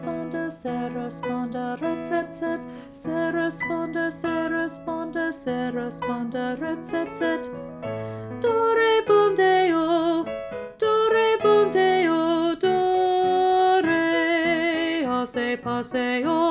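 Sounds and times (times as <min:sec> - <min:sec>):
soprano singing: 0:00.0 - 0:16.5.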